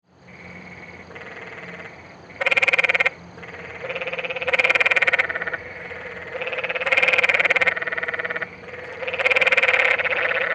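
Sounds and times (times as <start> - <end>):
canyon treefrog Hyla arenicolor trilling in southwestern California: 0.3 - 10.5.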